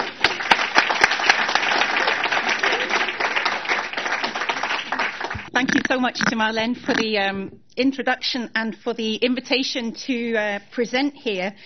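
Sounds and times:
audience applause welcoming a speaker: 0:00.0 - 0:05.9
speech: 0:05.6 - 0:11.6.

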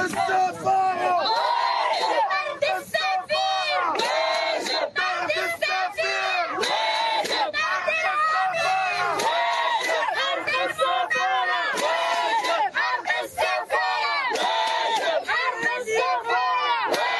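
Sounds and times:
protest crowd chanting slogans outside US Embassy in Tunis: 0:00.0 - 0:17.1.

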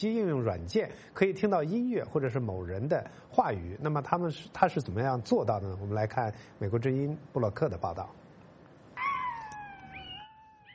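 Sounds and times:
speech: 0:00.0 - 0:08.2
pet dog howling like a wolf: 0:09.0 - 0:10.7.

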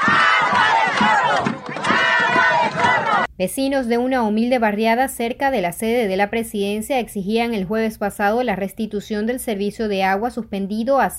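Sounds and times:
protest crowd chanting near the Venezuelan Presidential Palace: 0:00.0 - 0:03.3
speech: 0:03.4 - 0:11.1.

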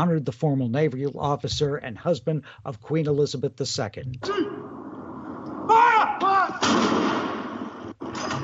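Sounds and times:
speech: 0:00.0 - 0:04.5
cannon blasts from a gun salute: 0:05.2 - 0:08.4.

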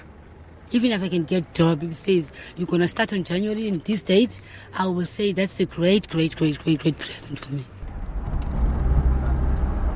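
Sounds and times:
bus engine rumbling as it pulls away on a long journey: 0:00.0 - 0:09.9
speech: 0:00.7 - 0:07.8.

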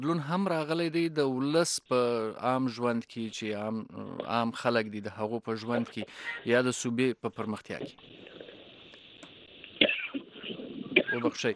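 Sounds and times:
speech: 0:00.0 - 0:08.3, 0:11.1 - 0:11.5
cough: 0:09.8 - 0:11.5.

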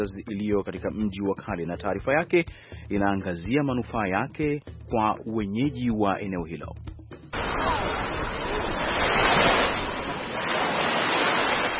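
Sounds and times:
speech: 0:00.0 - 0:06.9
gentle Indian Ocean waves lapping the shore at Mombasa near Fort Jesus: 0:07.4 - 0:11.7.

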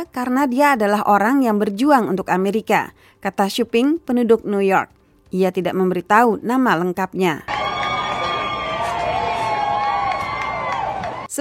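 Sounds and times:
speech: 0:00.0 - 0:07.5
crowd cheering in the street: 0:07.5 - 0:11.3.

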